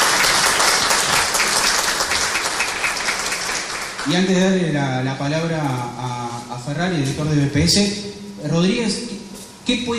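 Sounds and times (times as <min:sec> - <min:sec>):
audience applause at a public presentation event: 0:00.0 - 0:04.2
speech: 0:04.0 - 0:09.1, 0:09.7 - 0:09.9.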